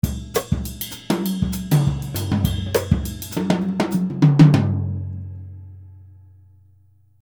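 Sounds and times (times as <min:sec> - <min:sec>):
jazz music: 0:00.0 - 0:05.8.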